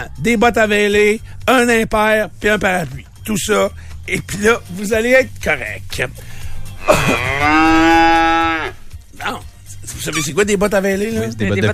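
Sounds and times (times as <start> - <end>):
speech: 0.0 - 8.5, 9.2 - 11.7
cow mooing: 6.8 - 8.8.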